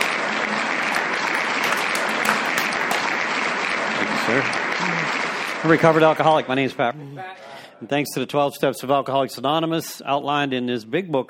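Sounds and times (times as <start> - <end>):
audience applause: 0.0 - 6.9
speech: 4.3 - 4.7, 5.6 - 11.2.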